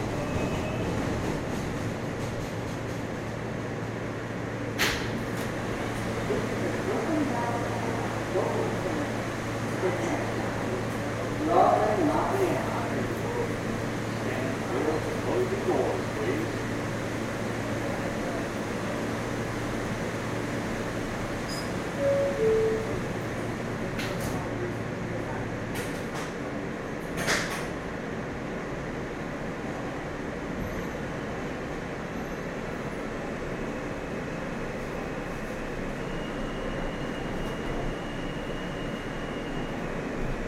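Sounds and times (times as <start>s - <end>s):
subway ride rumble: 0.0s - 40.4s
faint high tone: 22.0s - 23.1s.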